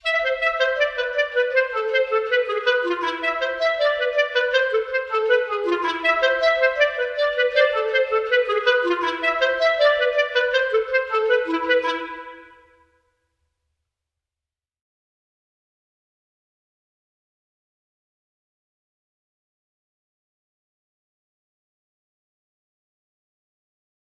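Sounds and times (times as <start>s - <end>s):
clarinet: 0.0s - 12.9s.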